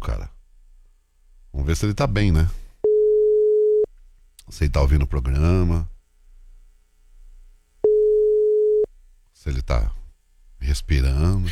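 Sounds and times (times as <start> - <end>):
speech: 1.6 - 2.6, 4.5 - 5.9, 9.4 - 10.0, 10.6 - 11.5
phone call ringing tone: 2.8 - 3.9, 7.8 - 8.9.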